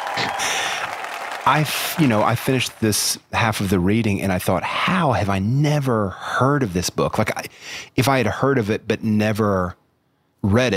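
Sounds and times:
cheering sound effect: 0.0 - 2.8
speech: 1.5 - 9.8, 10.4 - 10.7.

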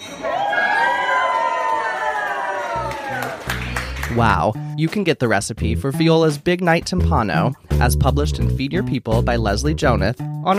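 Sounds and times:
crowd cheering at a food reveal: 0.2 - 4.4
scattered claps: 2.8 - 4.3
speech: 4.1 - 10.5.

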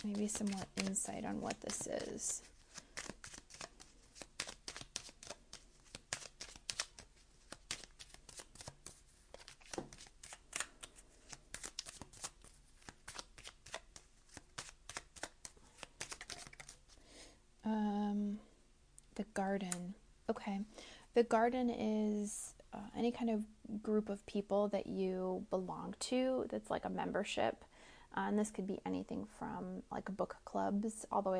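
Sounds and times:
speech: 0.0 - 2.6, 19.4 - 31.3
tarot cards shuffled and drawn: 0.0 - 17.0.

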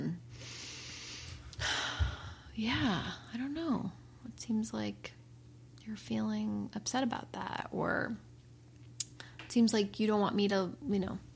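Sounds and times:
person taking a deep breath as a demonstration: 0.4 - 2.5
speech: 2.6 - 5.2, 5.8 - 8.3, 9.5 - 11.3.

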